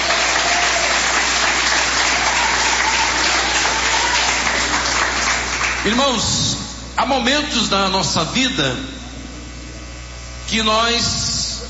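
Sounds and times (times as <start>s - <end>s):
audience applause: 0.0s - 6.0s
speech: 5.8s - 9.0s, 10.5s - 11.2s.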